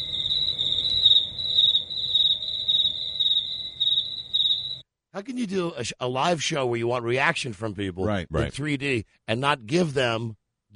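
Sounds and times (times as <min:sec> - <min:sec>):
crickets chirping: 0:00.0 - 0:04.8
speech: 0:05.2 - 0:10.4.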